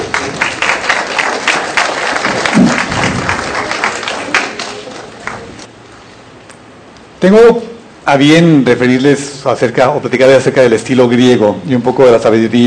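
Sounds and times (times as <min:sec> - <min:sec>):
audience applause: 0:00.0 - 0:05.7
speech: 0:07.2 - 0:12.6.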